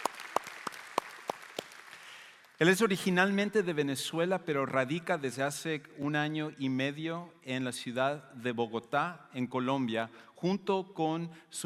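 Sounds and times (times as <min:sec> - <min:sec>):
audience applause: 0:00.0 - 0:02.6
speech: 0:02.6 - 0:11.6.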